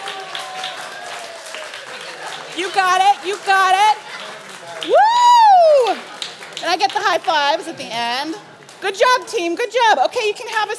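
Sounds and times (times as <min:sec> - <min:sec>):
crowd cheering and clapping: 0:00.0 - 0:07.4
speech: 0:02.6 - 0:04.0, 0:04.8 - 0:05.1, 0:06.6 - 0:10.7.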